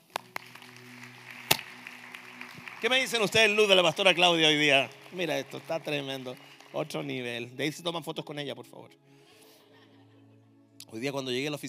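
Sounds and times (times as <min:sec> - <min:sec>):
single person clapping: 0:00.0 - 0:07.0
speech: 0:02.8 - 0:09.1, 0:10.9 - 0:11.6.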